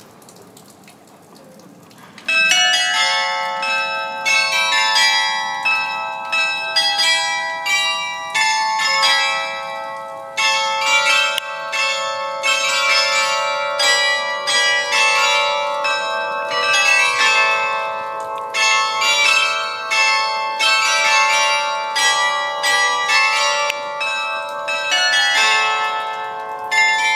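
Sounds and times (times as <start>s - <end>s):
town hall carillon bells: 2.3s - 27.1s.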